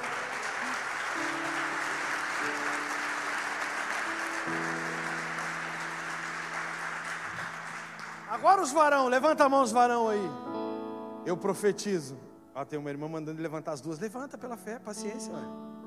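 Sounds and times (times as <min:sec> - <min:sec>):
audience applauding: 0:00.0 - 0:09.3
speech: 0:08.4 - 0:10.4, 0:11.2 - 0:15.6.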